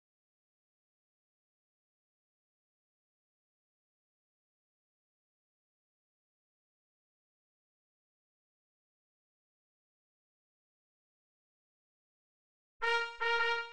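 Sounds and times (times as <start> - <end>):
signal horn call: 12.8 - 13.7.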